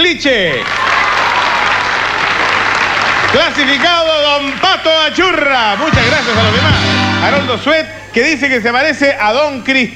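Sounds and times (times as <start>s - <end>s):
speech: 0.1s - 0.9s, 3.3s - 9.9s
audience applause: 0.6s - 6.8s.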